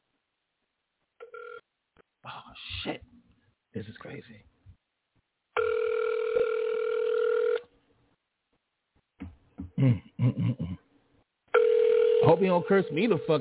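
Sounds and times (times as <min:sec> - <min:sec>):
speech: 0:03.8 - 0:04.6, 0:12.4 - 0:13.3
ringback tone on an outgoing phone call: 0:05.6 - 0:07.6, 0:11.6 - 0:13.3.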